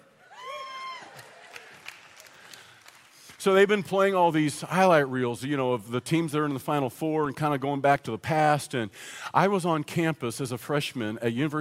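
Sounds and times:
crowd cheering: 0.0 - 3.2
high sustained whoop: 0.2 - 1.8
scattered claps and shouts: 0.8 - 3.4
speech: 3.4 - 11.6.

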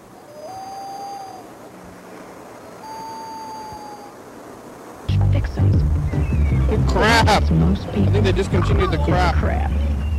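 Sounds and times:
noise: 0.0 - 10.1
emergency vehicle siren wailing: 0.2 - 2.0, 2.6 - 4.4
speech: 5.2 - 6.3, 6.9 - 9.9.

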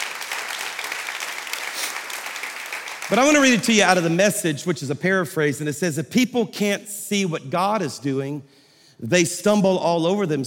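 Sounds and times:
audience clapping: 0.0 - 4.3
speech: 3.1 - 10.4.

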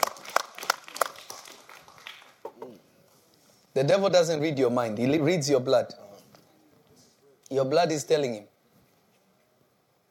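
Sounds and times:
audience clapping: 0.0 - 2.8
speech: 3.8 - 6.0, 7.5 - 8.5.

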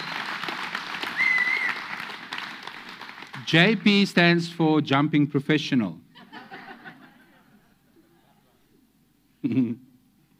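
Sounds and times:
audience hand clapping: 0.0 - 4.4
speech: 3.5 - 6.0, 9.4 - 9.9.

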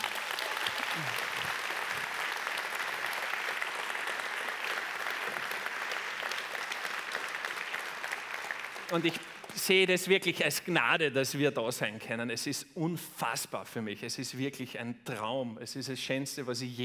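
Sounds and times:
audience applause: 0.0 - 9.9
speech: 8.9 - 16.8.

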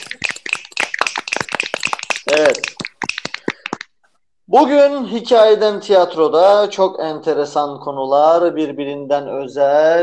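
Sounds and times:
applause, hands clapping: 0.0 - 4.0
speech: 2.3 - 2.7, 4.5 - 10.0.

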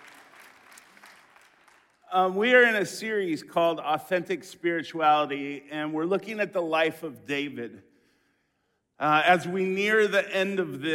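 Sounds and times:
audience clapping: 0.0 - 2.1
speech: 2.1 - 7.9, 9.0 - 10.9.

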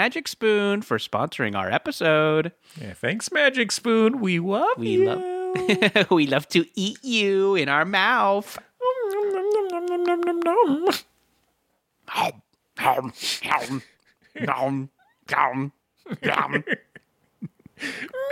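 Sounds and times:
speech: 0.0 - 8.7, 10.6 - 11.1, 12.1 - 16.9, 17.8 - 18.3
person imitating a cat meow: 4.8 - 6.0, 8.8 - 11.0
laughter: 4.9 - 6.2, 16.1 - 18.2.

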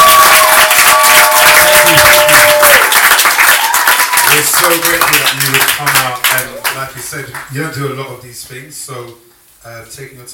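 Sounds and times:
live audience applause: 0.0 - 7.5
speech: 7.1 - 10.3.

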